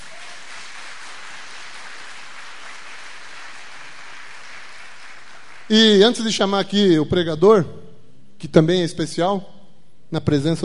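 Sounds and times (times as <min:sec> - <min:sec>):
audience applause: 0:00.0 - 0:05.7
speech: 0:05.7 - 0:07.8, 0:08.4 - 0:10.6.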